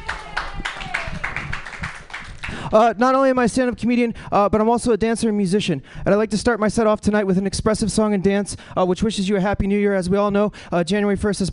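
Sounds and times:
audience applause: 0:00.0 - 0:02.6
speech: 0:02.7 - 0:11.5.

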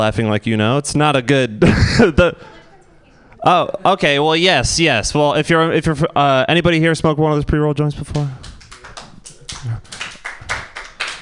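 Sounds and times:
speech: 0:00.0 - 0:02.6, 0:03.4 - 0:08.5
slow clap: 0:08.1 - 0:11.2.

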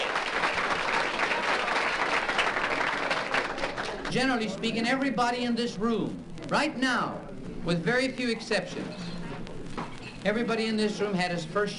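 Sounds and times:
audience applause: 0:00.0 - 0:04.1
speech: 0:04.1 - 0:09.1, 0:10.2 - 0:11.7.

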